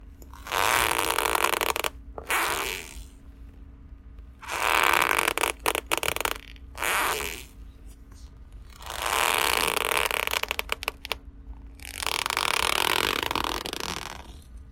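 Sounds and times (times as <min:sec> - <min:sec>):
leather stretching slowly: 0:00.3 - 0:03.1, 0:04.4 - 0:07.6, 0:08.7 - 0:11.2, 0:11.8 - 0:14.4.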